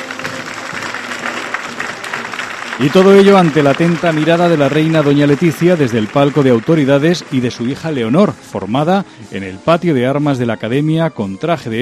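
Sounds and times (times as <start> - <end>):
spectators applauding at a military academy ceremony on the parade ground: 0.0 - 8.1
speech: 2.8 - 11.8.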